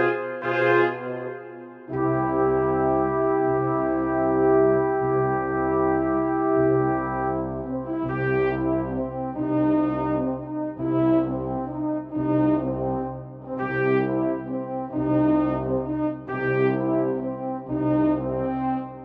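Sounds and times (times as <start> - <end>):
brass: 0.0 - 19.0.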